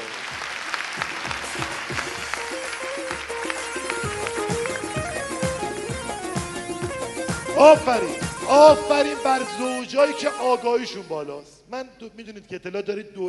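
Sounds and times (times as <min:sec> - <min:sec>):
audience clapping at a seminar: 0:00.0 - 0:09.6
pitched music: 0:01.0 - 0:11.4
speech: 0:07.6 - 0:13.2.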